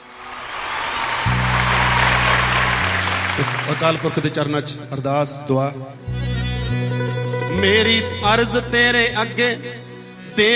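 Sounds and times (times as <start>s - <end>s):
audience applause: 0.0s - 4.6s
speech: 3.4s - 6.9s, 7.6s - 9.8s, 10.4s - 10.5s.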